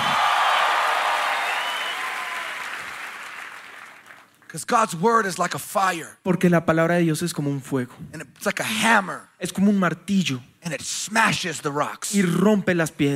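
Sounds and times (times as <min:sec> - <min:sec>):
audience applauding: 0:00.0 - 0:04.4
speech: 0:04.5 - 0:13.1.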